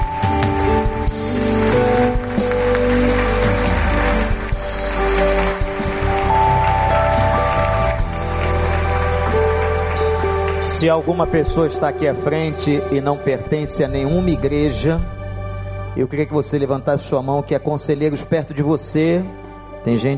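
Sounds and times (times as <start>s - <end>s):
audience applauding: 0.0s - 11.8s
sustained musical notes: 0.0s - 18.4s
speech: 10.8s - 15.2s, 16.0s - 20.1s.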